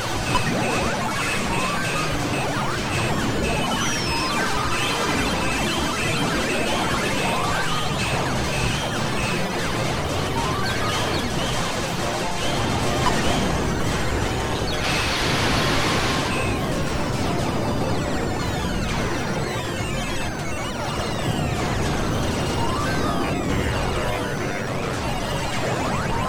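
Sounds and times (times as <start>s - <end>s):
arcade ambience: 0.0s - 26.2s.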